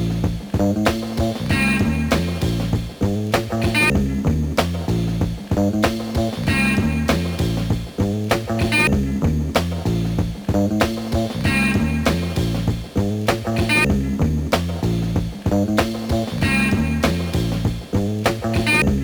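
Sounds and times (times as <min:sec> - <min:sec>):
suspicious beat: 0:00.0 - 0:19.0.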